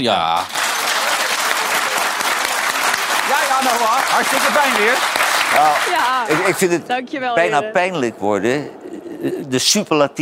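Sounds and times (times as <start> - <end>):
speech: 0.0 - 0.6, 3.5 - 10.2
audience applause: 0.1 - 6.9.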